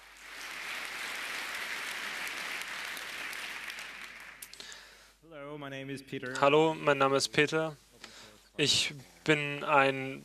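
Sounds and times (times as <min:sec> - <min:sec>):
audience applause: 0:00.0 - 0:04.9
speech: 0:05.4 - 0:07.8, 0:08.6 - 0:10.2.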